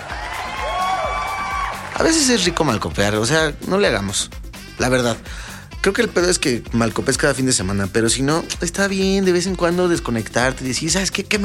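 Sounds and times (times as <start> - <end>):
applause and cheering: 0.0 - 3.0
speech: 2.0 - 11.4.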